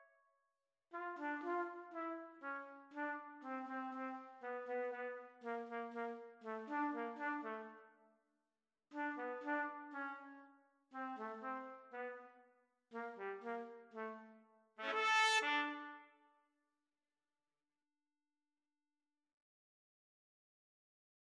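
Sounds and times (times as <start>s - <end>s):
trumpet and trombone duet: 1.0s - 7.7s, 9.0s - 10.2s, 11.0s - 12.2s, 13.0s - 16.1s.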